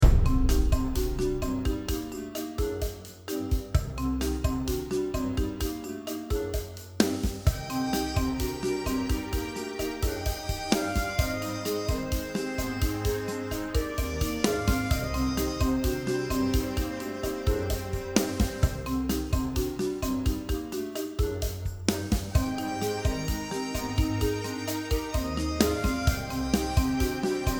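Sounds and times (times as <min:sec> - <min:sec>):
mallet percussion: 0:00.0 - 0:27.5
brass instruments: 0:07.6 - 0:19.1, 0:22.4 - 0:27.5.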